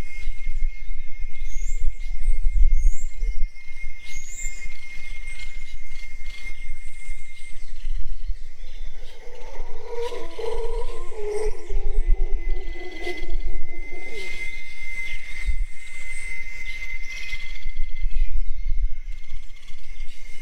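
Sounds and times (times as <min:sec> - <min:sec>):
steady high insect drone: 0:00.0 - 0:20.4
scattered bird calls: 0:08.4 - 0:15.6
howler monkey howls: 0:08.5 - 0:15.7.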